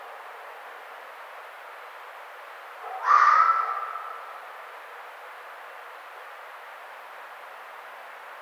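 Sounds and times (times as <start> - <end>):
red fox rasping scream: 3.0 - 4.4.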